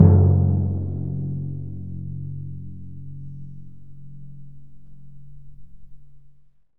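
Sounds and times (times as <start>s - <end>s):
orchestral percussion drums: 0.0s - 1.8s.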